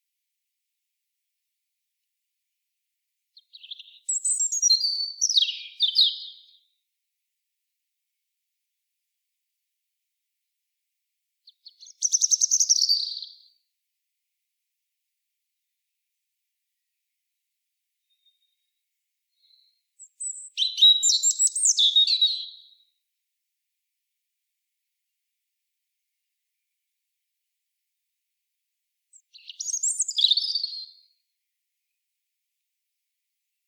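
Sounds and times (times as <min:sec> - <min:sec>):
European robin high trilling song: 0:03.4 - 0:06.6, 0:11.5 - 0:13.4, 0:18.0 - 0:22.8, 0:29.1 - 0:31.1.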